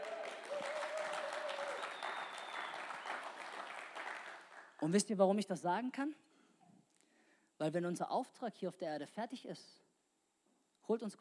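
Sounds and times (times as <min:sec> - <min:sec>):
sustained tonal cheer: 0:00.0 - 0:04.2
audience applause: 0:00.0 - 0:04.7
speech: 0:04.8 - 0:06.2, 0:07.6 - 0:09.8, 0:10.9 - 0:11.1.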